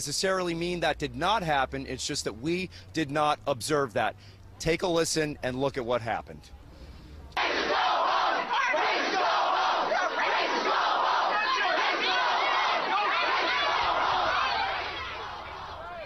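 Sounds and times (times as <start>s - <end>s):
speech: 0.0s - 6.6s
protest crowd shouting at reporters: 7.4s - 16.0s.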